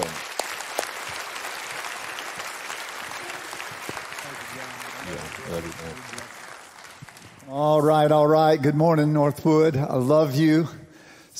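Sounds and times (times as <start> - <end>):
congregation applause welcoming a visiting pastor at a church service: 0.0 - 8.4
speech: 5.5 - 6.3, 7.5 - 10.8.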